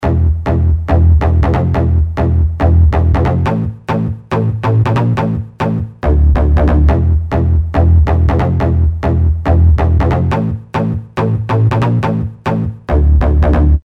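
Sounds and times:
industrial chunder bass: 0.0 - 13.8.

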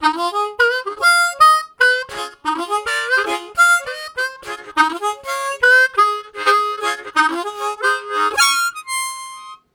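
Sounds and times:
jumped harmonica riffs: 0.0 - 9.7.

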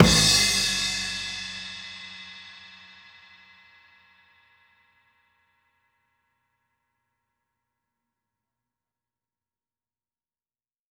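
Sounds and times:
kick drum: 0.0 - 1.0
snare drum: 0.0 - 2.2
crash cymbal: 0.0 - 3.9.

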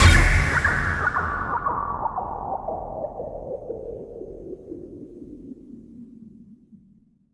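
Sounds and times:
left synth production effect: 0.0 - 4.5.

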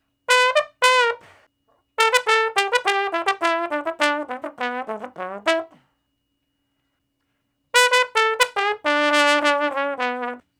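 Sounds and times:
slow blues trombone in E: 0.3 - 1.4, 2.0 - 5.8, 7.8 - 10.5.

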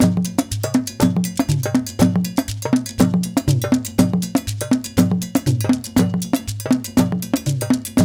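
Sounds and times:
African contemporary juju music: 0.0 - 8.0.

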